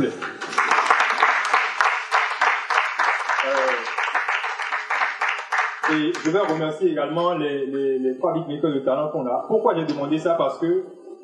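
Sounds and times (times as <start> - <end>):
audience applauding loudly: 0.0 - 6.7
speech: 5.9 - 11.0.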